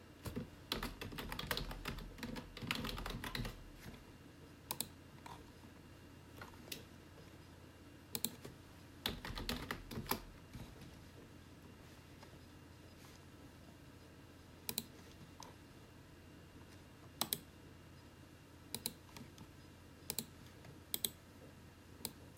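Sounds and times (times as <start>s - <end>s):
steady low whir of a personal computer: 0.0s - 22.3s
gentle typing on a keyboard: 0.2s - 4.0s, 4.7s - 5.4s, 8.1s - 10.3s, 14.7s - 15.0s, 17.2s - 17.5s, 18.7s - 19.3s, 20.1s - 21.2s
mouse clicks: 4.7s - 5.4s, 8.1s - 8.5s, 14.7s - 15.5s, 17.2s - 17.5s, 18.7s - 19.5s, 20.1s - 20.3s, 20.9s - 21.2s.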